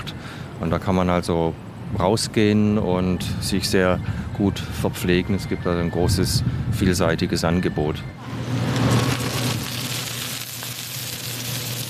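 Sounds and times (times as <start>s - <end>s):
speech: 0.6s - 8.6s
food sizzling and spattering on a hot griddle: 8.4s - 11.8s.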